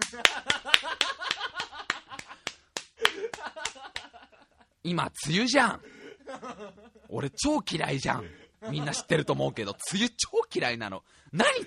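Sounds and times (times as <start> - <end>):
hand clapping: 0.0 - 4.2
laughter: 0.0 - 4.8, 5.9 - 7.4, 8.0 - 10.0
speech: 4.8 - 11.6.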